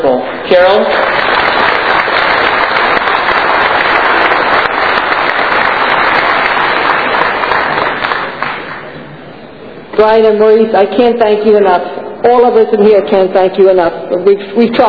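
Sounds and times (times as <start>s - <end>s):
speech: 0.1s - 1.2s, 10.0s - 14.8s
large audience at a chess event applauding: 0.3s - 9.0s.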